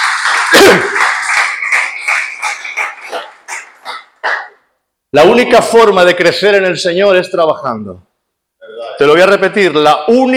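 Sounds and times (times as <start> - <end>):
audience applause: 0.0 - 4.6
loud cry: 0.4 - 1.1
speech: 5.1 - 8.1, 9.0 - 10.3.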